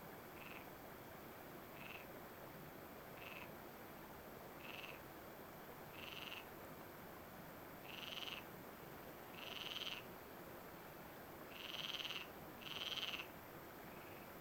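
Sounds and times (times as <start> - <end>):
background hiss: 0.0 - 14.3
frogs croaking: 0.4 - 0.7, 1.7 - 2.1, 3.1 - 3.6, 4.6 - 5.1, 5.9 - 6.6, 7.8 - 8.5, 9.3 - 10.1, 11.5 - 14.3.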